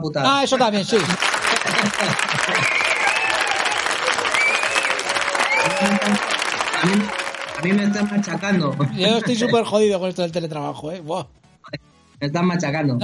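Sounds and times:
speech: 0.0 - 3.0, 5.7 - 13.0
applause: 0.6 - 9.6
laughter: 0.6 - 9.9.

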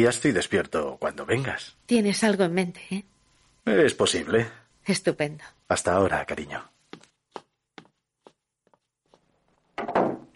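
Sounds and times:
speech: 0.0 - 6.7
footsteps: 6.8 - 9.6.

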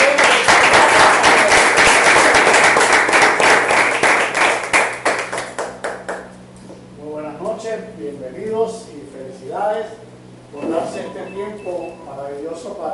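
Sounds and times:
loud applause: 0.0 - 6.2.

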